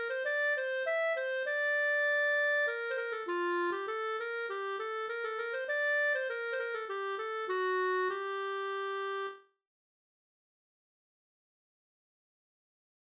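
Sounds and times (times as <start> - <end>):
polska from Rättvik: 0.0 - 9.4.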